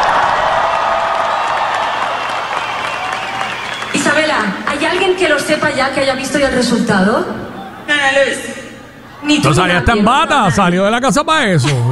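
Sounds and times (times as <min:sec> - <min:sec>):
audience applause: 0:00.0 - 0:05.5
speech: 0:05.2 - 0:07.4, 0:08.0 - 0:08.5, 0:09.2 - 0:11.8.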